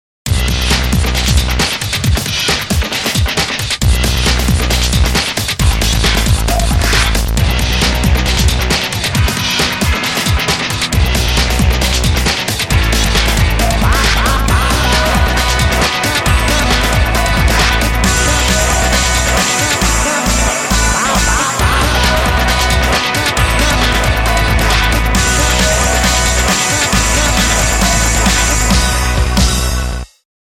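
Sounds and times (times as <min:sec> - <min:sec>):
big beat music: 0:00.3 - 0:30.1.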